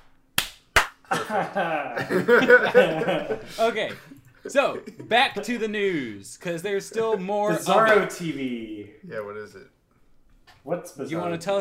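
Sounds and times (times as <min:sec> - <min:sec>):
single hand clap for sync: 0:00.0 - 0:01.0
laughter: 0:01.1 - 0:05.7
speech: 0:01.1 - 0:09.8, 0:10.6 - 0:11.6.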